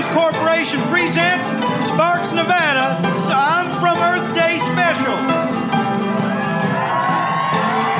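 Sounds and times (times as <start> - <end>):
speech: 0.1 - 5.4
audience clapping and cheering: 5.7 - 7.9.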